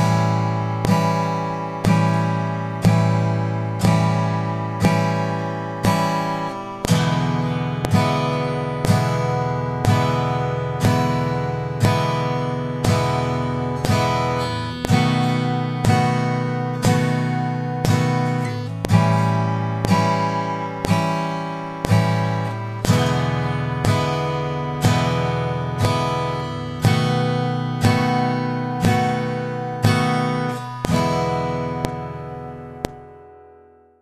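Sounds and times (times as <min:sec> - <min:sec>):
guitar playing E7 basic blues full chords: 0:00.0 - 0:34.0.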